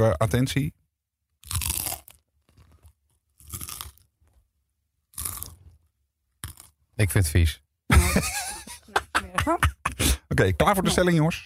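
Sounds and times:
speech: 0.0s - 0.8s, 7.0s - 8.4s, 9.4s - 11.4s
chewing crackles: 1.4s - 4.4s, 5.1s - 6.8s
nacho chips being broken and crunched at the microphone: 1.4s - 4.4s, 5.1s - 6.8s
laughter: 7.9s - 11.4s.

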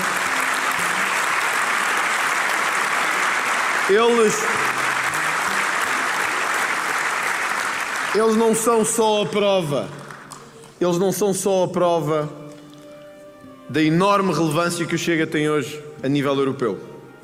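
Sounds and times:
audience applause: 0.0s - 10.7s
speech: 3.9s - 4.8s, 8.1s - 10.0s, 10.8s - 12.4s, 13.7s - 16.9s.

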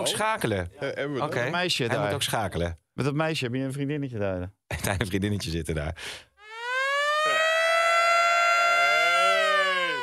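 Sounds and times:
speech: 0.1s - 6.3s
loud alarm siren sound effect wailing: 6.4s - 10.0s
laughter: 7.1s - 7.7s, 8.7s - 10.0s.

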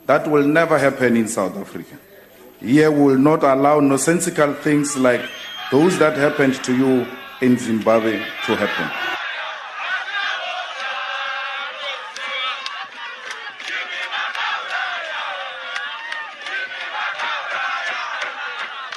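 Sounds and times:
speech: 0.1s - 9.2s
large crowd chanting and cheering: 4.2s - 18.9s
whistles: 4.7s - 7.4s.

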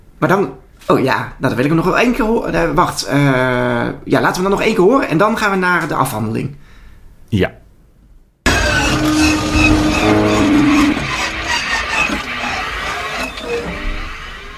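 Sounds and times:
speech: 0.2s - 6.6s, 7.3s - 7.6s
leaking pipe in a men's toilet: 8.5s - 14.5s.

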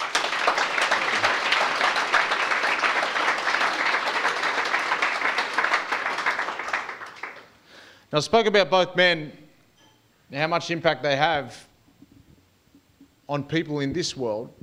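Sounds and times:
round of applause: 0.0s - 7.6s
speech: 8.1s - 9.4s, 10.3s - 11.7s, 13.3s - 14.6s.

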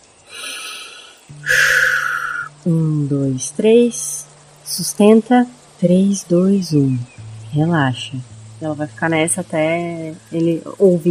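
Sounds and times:
person breathing: 0.3s - 2.5s
speech: 2.6s - 4.2s, 4.8s - 11.0s.

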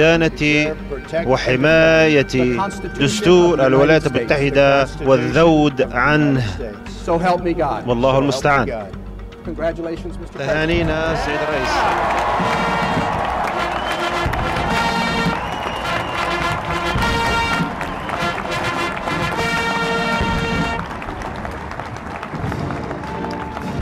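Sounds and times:
speech: 0.0s - 12.6s
crowd applause and cheering at a US presidential inauguration: 10.6s - 23.8s.

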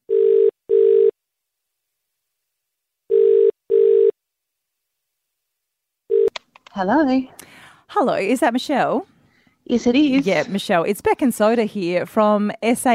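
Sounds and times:
phone line ringing out after a number is dialled: 0.1s - 1.1s, 3.1s - 4.1s, 6.1s - 6.3s
sharp click as the call is answered: 6.3s - 6.8s
speech: 6.8s - 9.1s, 9.7s - 12.9s.

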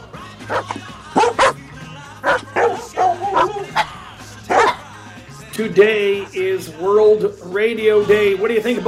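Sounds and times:
dogs barking: 0.4s - 5.0s
speech: 0.5s - 1.4s, 5.6s - 8.8s.

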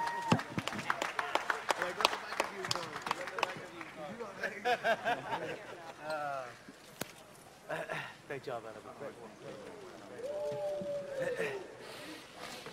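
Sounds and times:
cheers and excited voices: 0.0s - 0.5s, 10.2s - 11.8s
round of applause: 0.0s - 4.1s
laughter: 4.2s - 5.9s, 10.8s - 12.1s
speech: 8.4s - 11.7s.

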